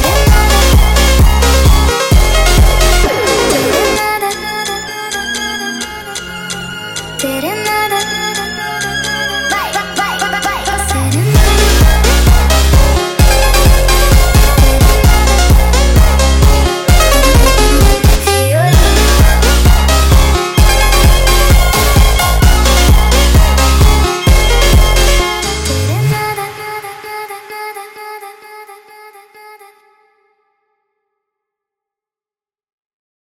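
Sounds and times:
sped up funk music: 0:00.0 - 0:26.4.

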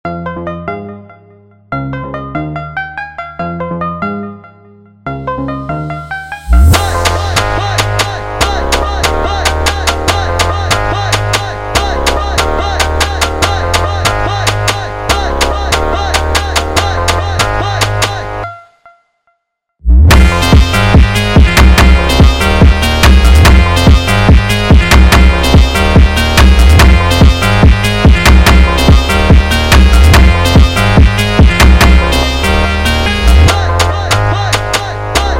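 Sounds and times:
sped up phonk mashup: 0:06.5 - 0:18.4, 0:19.9 - 0:35.3.

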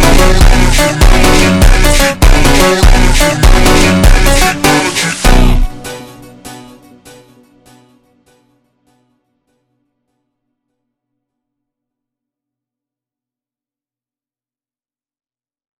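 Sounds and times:
super slowed funk music: 0:00.0 - 0:06.6.

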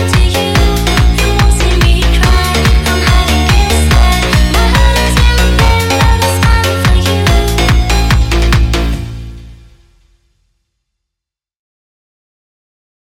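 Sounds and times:
sped up funk music: 0:00.0 - 0:09.8.

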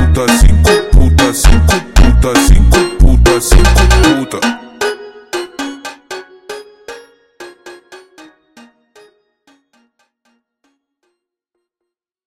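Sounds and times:
slowed funk music: 0:00.0 - 0:09.1.

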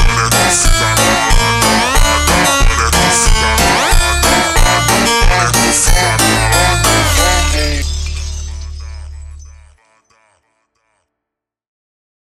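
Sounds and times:
slowed funk music: 0:00.0 - 0:09.6.

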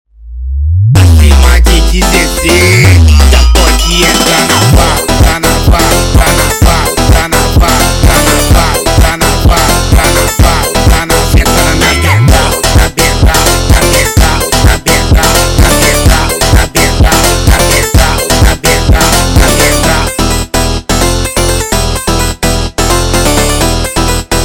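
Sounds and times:
sped up funk music: 0:01.0 - 0:24.4.

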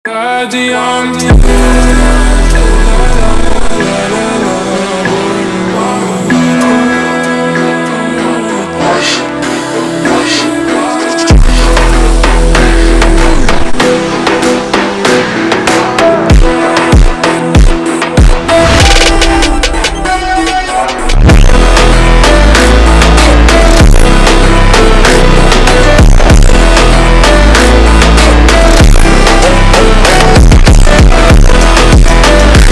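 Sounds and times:
super slowed funk music: 0:00.0 - 0:32.7.

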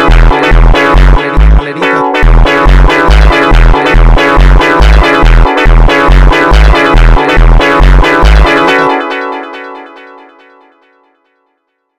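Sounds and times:
funk meow synthesizer: 0:00.0 - 0:08.5.

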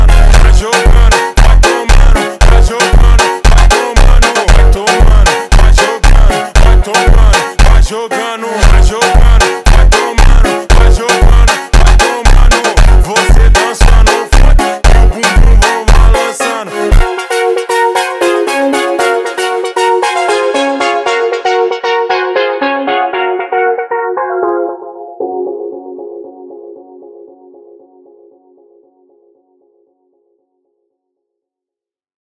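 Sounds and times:
slowed funk music: 0:00.0 - 0:08.0, 0:08.6 - 0:26.2.

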